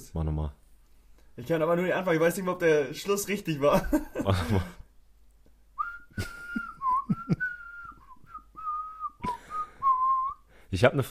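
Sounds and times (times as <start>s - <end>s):
speech: 0.1s - 0.6s, 1.4s - 4.8s, 6.2s - 6.4s, 10.7s - 11.0s
whistled Christmas carol melody: 5.8s - 10.5s.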